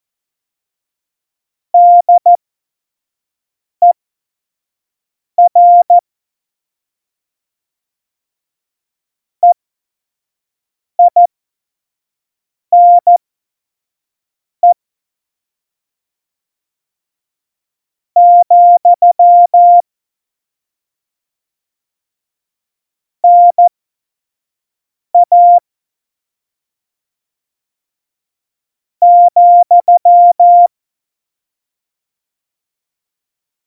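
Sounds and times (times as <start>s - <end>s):
CW Morse code beeps: 1.8s - 2.3s, 5.4s - 5.9s, 11.0s - 11.3s, 12.8s - 13.2s, 18.2s - 19.8s, 23.2s - 23.7s, 25.2s - 25.6s, 29.0s - 30.7s.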